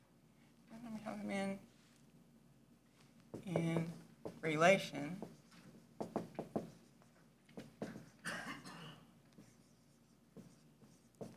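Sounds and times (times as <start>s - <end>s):
speech: 1.1s - 1.7s, 3.4s - 5.4s
handwriting during a lecture: 5.2s - 8.2s, 9.3s - 11.3s.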